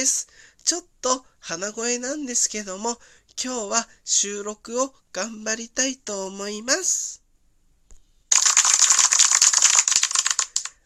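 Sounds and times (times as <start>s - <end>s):
speech: 0.0s - 7.2s
applause: 8.3s - 10.8s.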